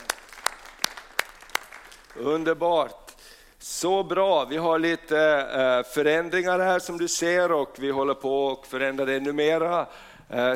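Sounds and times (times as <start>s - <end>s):
hands clapping: 0.0s - 3.2s
speech: 2.2s - 3.0s, 3.6s - 10.5s.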